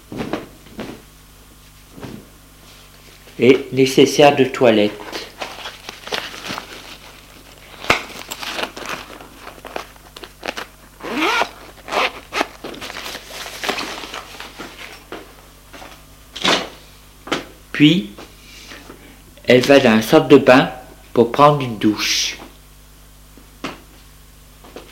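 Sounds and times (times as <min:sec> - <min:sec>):
speech: 0:03.4 - 0:05.1, 0:17.8 - 0:18.2, 0:19.5 - 0:22.4
suitcase zipper: 0:11.0 - 0:12.6.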